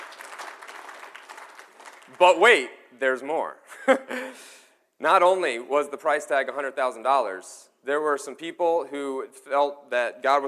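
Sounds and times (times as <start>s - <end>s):
audience clapping: 0.0s - 2.5s
speech: 2.1s - 10.4s.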